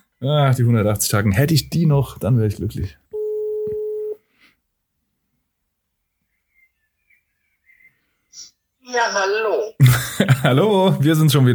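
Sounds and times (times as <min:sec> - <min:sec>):
speech: 0:00.2 - 0:03.0, 0:08.4 - 0:11.5
telephone ringback tone on an outgoing call: 0:03.2 - 0:04.2
faint high chirps: 0:05.9 - 0:09.3
laughter: 0:09.8 - 0:11.5.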